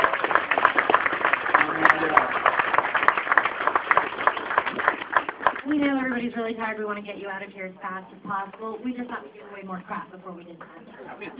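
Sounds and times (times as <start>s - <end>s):
audience applause: 0.0s - 5.8s
speech: 5.8s - 11.3s.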